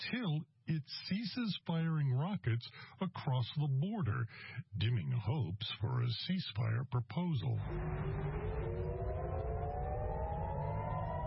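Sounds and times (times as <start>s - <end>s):
speech: 0.0s - 8.6s
air raid sirens in Tel Aviv: 7.6s - 11.2s.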